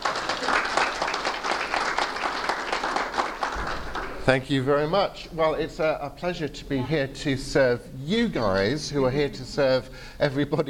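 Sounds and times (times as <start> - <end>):
conference audience applause: 0.0 - 4.4
speech: 4.2 - 10.6.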